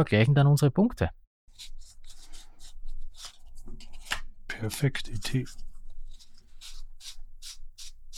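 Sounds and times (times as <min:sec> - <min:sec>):
speech: 0:00.0 - 0:01.8, 0:04.6 - 0:05.6
playing cards shuffled for a quick card game: 0:01.6 - 0:04.3, 0:05.0 - 0:08.1.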